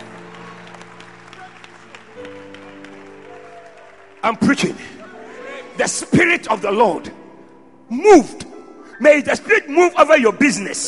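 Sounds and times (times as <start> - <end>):
audience clapping hands: 0.0 - 5.2
speech: 4.2 - 5.0, 5.8 - 7.2, 7.9 - 10.8.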